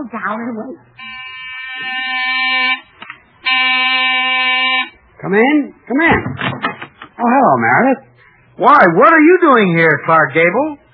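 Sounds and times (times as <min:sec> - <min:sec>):
speech: 0:00.0 - 0:01.1, 0:05.3 - 0:06.6, 0:07.2 - 0:10.8
electric door buzzer: 0:01.0 - 0:05.0.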